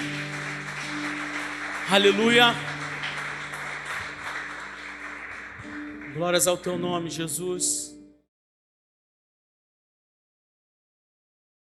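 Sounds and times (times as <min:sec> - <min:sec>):
audience applause: 0:00.0 - 0:06.8
speech: 0:01.9 - 0:02.7, 0:06.2 - 0:08.0.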